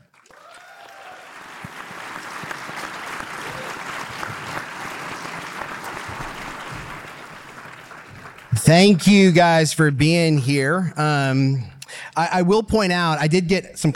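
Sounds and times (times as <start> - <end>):
audience applause: 0.0 - 9.6
speech: 8.6 - 13.9.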